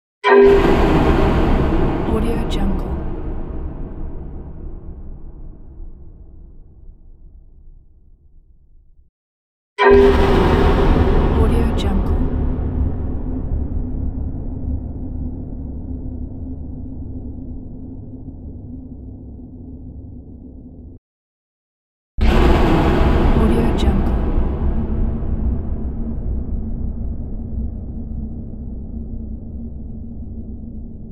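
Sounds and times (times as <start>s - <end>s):
horror hit: 0.2s - 8.1s, 9.8s - 20.4s, 22.2s - 31.1s.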